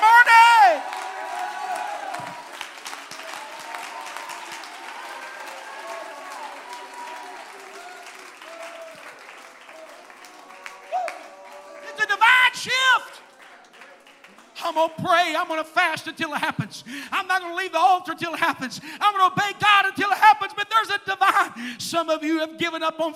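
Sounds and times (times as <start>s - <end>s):
audience shouting: 0.0s - 13.2s
audience clapping: 0.0s - 15.4s
speech: 14.8s - 23.1s.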